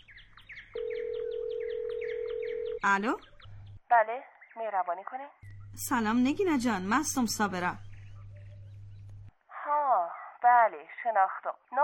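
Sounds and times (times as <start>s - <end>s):
bird chirps: 0.0s - 4.6s, 7.7s - 9.3s
telephone line tone while calling a mobile phone: 0.8s - 2.9s
speech: 2.8s - 3.3s, 3.9s - 7.9s, 10.7s - 11.8s.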